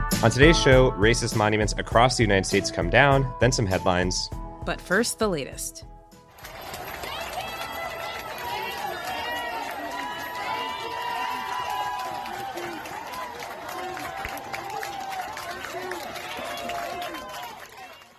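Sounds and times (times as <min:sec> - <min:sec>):
speech: 0:00.2 - 0:05.9
hospital staff applauding passing protesters: 0:06.3 - 0:18.1.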